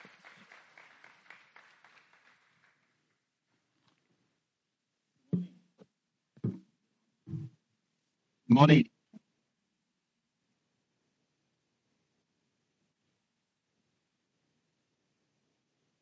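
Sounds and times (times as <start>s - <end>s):
faint audience applause at a morning church gathering: 0.0s - 3.4s
speech: 8.6s - 8.9s.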